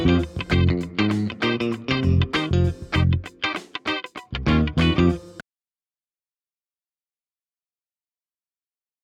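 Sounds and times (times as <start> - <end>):
music without drums: 0.0 - 5.4.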